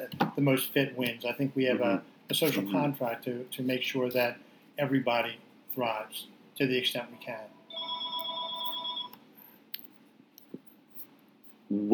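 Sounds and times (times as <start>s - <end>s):
low hum: 0.0s - 11.9s
speech: 0.4s - 7.6s, 11.7s - 11.9s
electronic bell ringing in the studio: 7.2s - 9.2s
faint clicks and taps: 9.1s - 11.6s.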